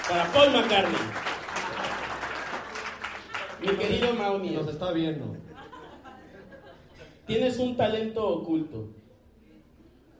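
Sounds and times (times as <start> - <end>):
audience applause: 0.0 - 4.3
speech: 0.1 - 1.3, 3.6 - 5.5, 7.3 - 9.0
laughter: 5.3 - 7.3.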